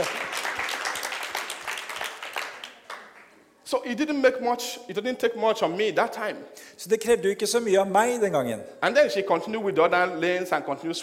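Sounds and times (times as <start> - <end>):
clapping: 0.0 - 3.4
speech: 3.7 - 11.0.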